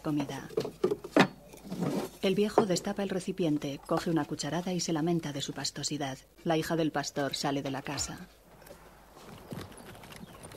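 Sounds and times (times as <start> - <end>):
speech: 0.0 - 0.8, 2.2 - 8.4
horse hooves clip-clopping of a horse-drawn cart: 8.5 - 10.5.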